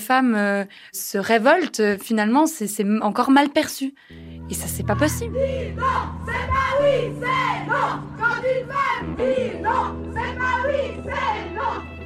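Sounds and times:
speech: 0:00.1 - 0:12.0
steady low rumble: 0:04.2 - 0:10.1
crowd chanting slogans at a protest march: 0:05.2 - 0:12.0.

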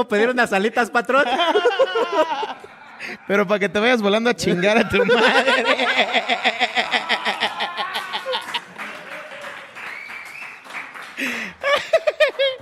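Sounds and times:
speech: 0:00.0 - 0:07.9
laughter: 0:00.8 - 0:03.6, 0:04.4 - 0:09.7, 0:11.2 - 0:12.5
audience cheering: 0:05.3 - 0:11.5
audience applause: 0:05.9 - 0:12.5.

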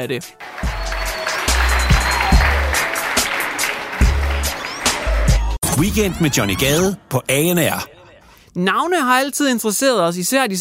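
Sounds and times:
speech: 0:00.0 - 0:00.8, 0:05.8 - 0:07.9, 0:08.5 - 0:10.5
applause: 0:00.4 - 0:05.6.

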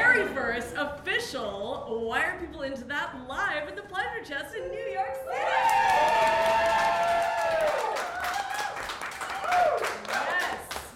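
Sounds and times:
speech: 0:00.5 - 0:06.7
live audience at the Pleasure Chest in New York City screaming and cheering: 0:05.3 - 0:10.0
clapping: 0:05.6 - 0:10.9.

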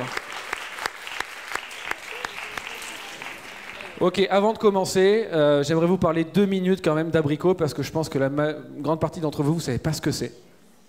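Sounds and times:
audience applause: 0:00.0 - 0:04.2
speech: 0:04.0 - 0:10.5.

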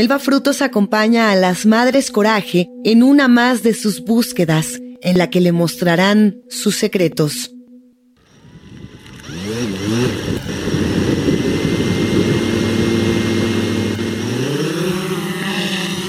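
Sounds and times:
speech: 0:00.0 - 0:07.6
small drone buzzing in flight: 0:08.2 - 0:16.0.

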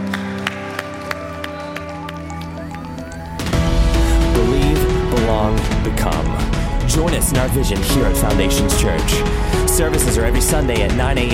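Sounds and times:
loud dense audience applause: 0:00.0 - 0:03.6
soft sustained music: 0:00.0 - 0:11.3
speech: 0:05.5 - 0:11.3.

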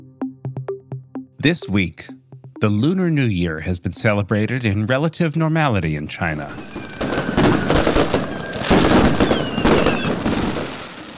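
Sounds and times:
speech: 0:01.4 - 0:07.8
fireworks exploding in the sky: 0:06.4 - 0:11.1.

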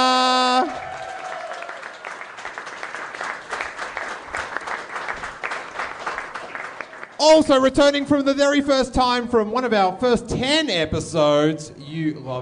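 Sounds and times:
audience round of applause: 0:00.3 - 0:07.2
speech: 0:07.2 - 0:12.3.

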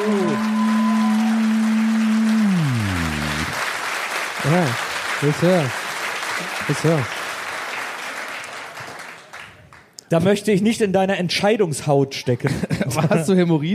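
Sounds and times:
audience applause: 0:00.0 - 0:09.9
speech: 0:04.5 - 0:05.8, 0:06.7 - 0:07.2, 0:10.1 - 0:13.7
laughter: 0:12.4 - 0:13.4.

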